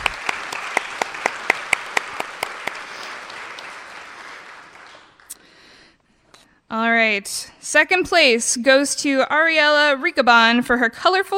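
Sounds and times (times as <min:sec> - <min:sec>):
audience applause: 0:00.0 - 0:05.4
speech: 0:06.7 - 0:11.3.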